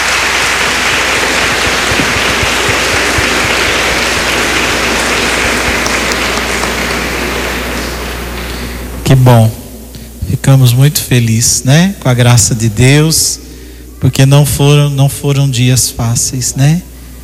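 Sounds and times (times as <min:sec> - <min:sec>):
audience applause: 0:00.0 - 0:08.9
speech: 0:09.1 - 0:09.6, 0:10.4 - 0:13.4, 0:14.0 - 0:16.9.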